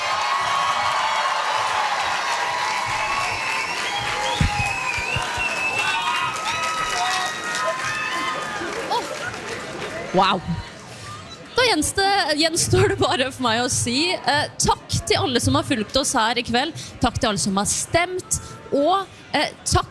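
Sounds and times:
audience applause: 0.0 - 10.1
speech: 10.1 - 10.7, 11.7 - 19.9.

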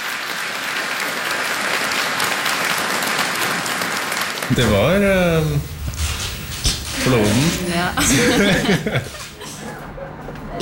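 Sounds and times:
audience applause: 0.0 - 5.6, 8.0 - 9.6
speech: 4.5 - 5.7, 7.0 - 9.2
laughter: 7.4 - 10.6.

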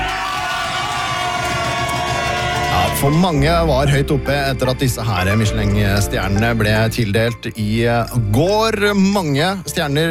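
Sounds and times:
crowd cheering: 0.0 - 3.5
speech: 3.0 - 10.1.

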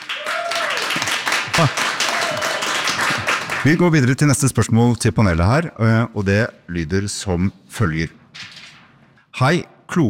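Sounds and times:
audience applause: 0.0 - 3.8
speech: 1.6 - 1.9, 3.6 - 8.2, 9.4 - 10.0.

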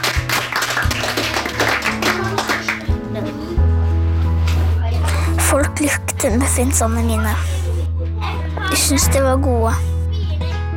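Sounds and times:
audience applause: 0.0 - 3.0
upbeat music: 0.0 - 10.7
speech: 5.8 - 7.6, 8.8 - 9.9.

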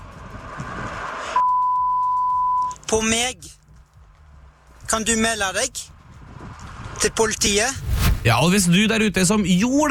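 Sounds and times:
censor bleep covering a word on radio: 1.4 - 2.8
speech: 2.9 - 3.6, 4.9 - 5.9, 7.0 - 9.9.

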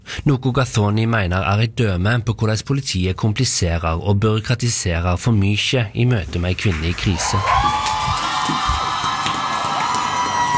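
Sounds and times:
speech: 0.2 - 7.8
theatre audience cheering and whooping: 6.7 - 10.5.

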